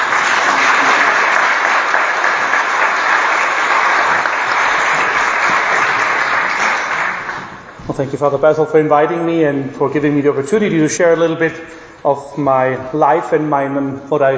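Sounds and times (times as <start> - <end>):
audience applause at a Lenten evening talk: 0.0 - 7.8
speech: 8.0 - 14.3.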